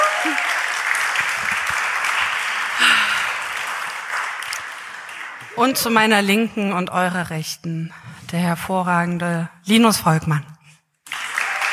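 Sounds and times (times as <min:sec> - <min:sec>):
cheers: 0:00.0 - 0:05.8, 0:11.1 - 0:11.7
live audience applause: 0:00.0 - 0:06.1, 0:11.0 - 0:11.7
speech: 0:05.6 - 0:10.5.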